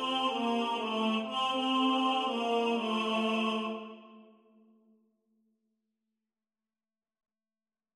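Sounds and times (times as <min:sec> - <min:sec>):
tenor singing: 0:00.0 - 0:04.2.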